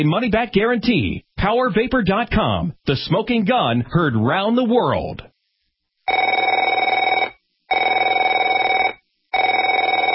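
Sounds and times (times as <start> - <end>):
speech: 0.0 - 5.3
telephone ringing with electronic warble: 6.1 - 10.1.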